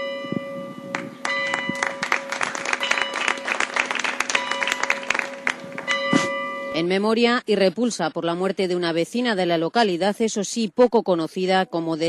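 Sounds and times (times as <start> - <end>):
applause at a memorial gathering: 0.9 - 5.9
clock bells of the Plaza Hoyense ringing: 1.3 - 3.6, 4.3 - 6.8
speech: 6.8 - 12.0.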